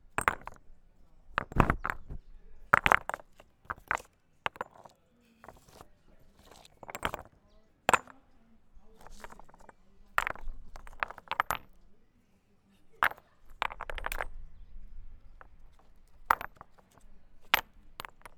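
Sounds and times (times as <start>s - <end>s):
rocks being thrown: 0.2s - 0.7s, 1.3s - 8.2s, 9.0s - 11.8s, 13.0s - 14.4s, 15.3s - 18.3s.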